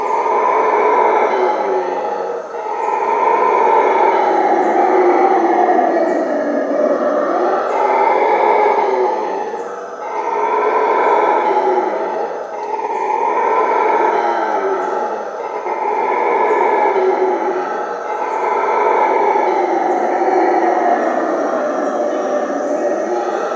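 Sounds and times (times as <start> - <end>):
howler monkey howling: 0.0 - 23.5.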